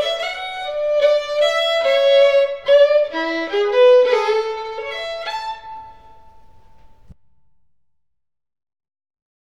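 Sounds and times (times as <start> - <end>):
waltz music: 0.0 - 7.1.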